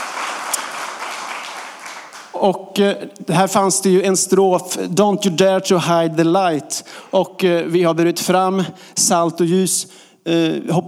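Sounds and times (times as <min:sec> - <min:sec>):
crowd applauding for musicians: 0:00.0 - 0:02.4
speech: 0:02.4 - 0:10.8.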